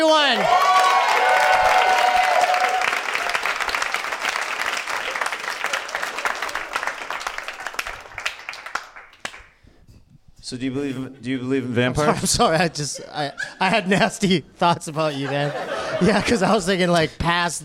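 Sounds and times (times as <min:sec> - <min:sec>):
speech: 0:00.0 - 0:00.7, 0:10.5 - 0:17.6
people cheering: 0:00.0 - 0:08.9
round of applause from a group: 0:00.0 - 0:09.6
laughter: 0:12.0 - 0:16.8.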